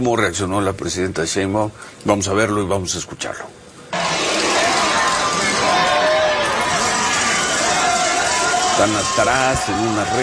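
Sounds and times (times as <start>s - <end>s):
speech: 0.0s - 3.6s, 8.8s - 10.2s
distant crowd shouting: 4.0s - 10.2s.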